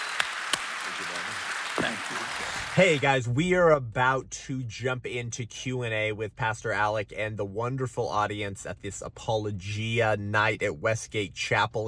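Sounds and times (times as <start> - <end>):
audience applause at an evening Apologia event at Westgate Chapel: 0.0 - 3.0
speech: 1.8 - 11.8.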